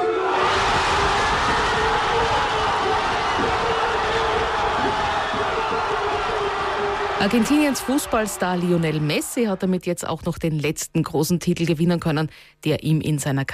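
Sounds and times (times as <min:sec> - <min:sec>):
whoops: 0:00.0 - 0:09.5
football fans cheering: 0:00.0 - 0:10.0
speech: 0:07.2 - 0:13.5.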